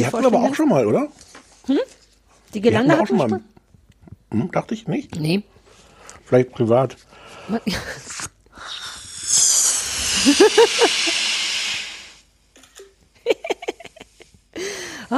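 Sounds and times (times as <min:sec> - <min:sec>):
speech: 0:00.0 - 0:03.5, 0:04.3 - 0:05.6, 0:06.3 - 0:09.5, 0:10.2 - 0:11.2, 0:14.6 - 0:15.1
air hissing out of a balloon: 0:07.4 - 0:12.4.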